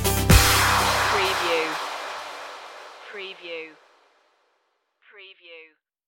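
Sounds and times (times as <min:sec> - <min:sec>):
rising musical stinger: 0:00.1 - 0:04.0.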